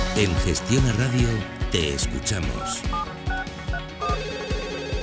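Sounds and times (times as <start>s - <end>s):
speech: 0.2s - 3.3s
telephone ringing: 2.3s - 5.0s.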